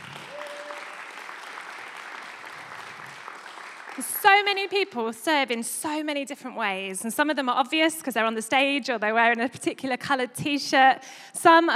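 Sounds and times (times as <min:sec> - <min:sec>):
audience applause: 0:00.0 - 0:04.9
speech: 0:04.0 - 0:11.7.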